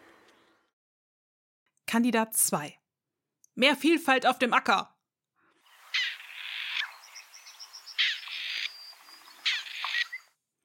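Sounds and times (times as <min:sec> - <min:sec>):
speech: 0:01.9 - 0:02.8, 0:03.6 - 0:04.9
Grey Partridge rasping calls: 0:05.6 - 0:10.3.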